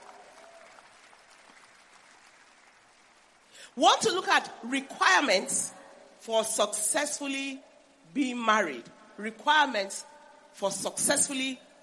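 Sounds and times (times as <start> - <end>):
audience clapping hands: 0.0 - 3.7
speech: 3.7 - 11.7.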